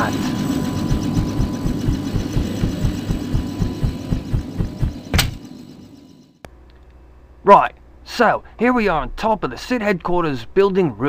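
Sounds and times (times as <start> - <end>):
transport helicopter engine running: 0.0 - 5.5
speech: 7.5 - 11.0.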